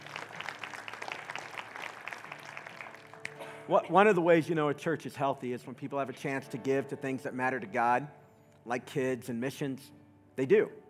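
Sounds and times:
audience applauding: 0:00.0 - 0:03.5
speech: 0:03.7 - 0:10.8.

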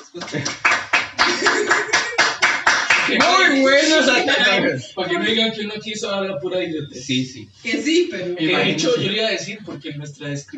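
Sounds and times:
hands clapping: 0:00.0 - 0:04.1
laughter: 0:00.0 - 0:05.7
speech: 0:00.1 - 0:00.6, 0:03.6 - 0:10.5.

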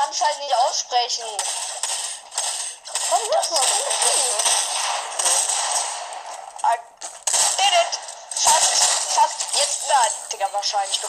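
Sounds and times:
gunshots in a shooter video game: 0:00.0 - 0:11.0
speech: 0:00.2 - 0:02.0, 0:03.1 - 0:05.4, 0:08.7 - 0:11.0.

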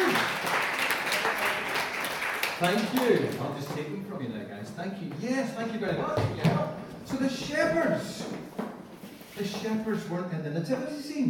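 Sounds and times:
crowd applause: 0:00.0 - 0:03.6
speech: 0:02.6 - 0:08.5, 0:09.4 - 0:11.2.

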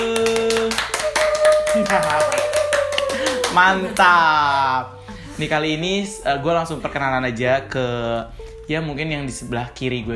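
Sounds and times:
audience applause: 0:00.0 - 0:04.2
speech: 0:01.9 - 0:02.5, 0:03.6 - 0:10.1.

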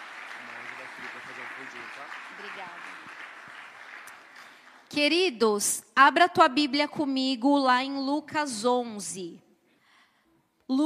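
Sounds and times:
audience applauding: 0:00.0 - 0:04.9
speech: 0:01.6 - 0:03.2, 0:05.0 - 0:09.4, 0:10.7 - 0:10.8.

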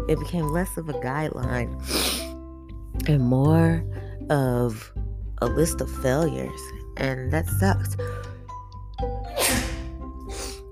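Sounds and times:
speech: 0:00.1 - 0:02.2, 0:03.0 - 0:08.3
person sneezing: 0:09.3 - 0:10.6.

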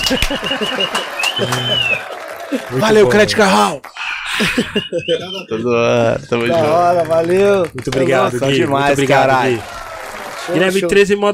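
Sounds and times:
scattered hand claps: 0:00.0 - 0:02.7, 0:06.3 - 0:10.5
laughter: 0:00.0 - 0:10.4
excited voices: 0:00.0 - 0:11.0
speech: 0:00.1 - 0:09.8, 0:10.5 - 0:11.3.

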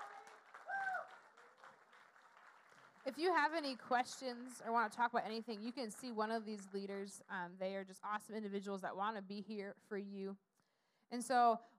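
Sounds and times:
audience clapping: 0:00.0 - 0:04.5
speech: 0:03.0 - 0:10.4, 0:11.1 - 0:11.7.

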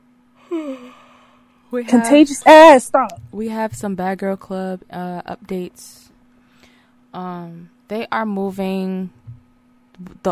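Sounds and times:
person yawning: 0:00.4 - 0:01.3
speech: 0:01.7 - 0:06.1, 0:07.1 - 0:09.2, 0:10.0 - 0:10.3.

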